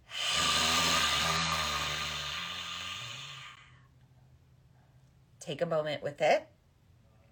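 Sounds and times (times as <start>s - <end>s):
forceful lion's breath exhale: 0.0s - 3.8s
speech: 5.5s - 6.6s.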